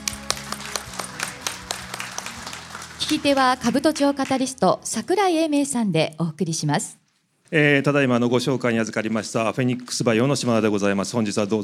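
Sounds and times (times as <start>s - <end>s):
sparse hand claps welcoming a company president at an investor presentation: 0.0s - 4.4s
speech: 3.0s - 11.6s.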